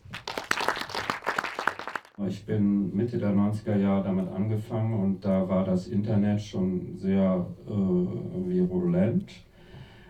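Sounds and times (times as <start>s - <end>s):
audience applause: 0.0s - 2.2s
speech: 2.2s - 9.5s.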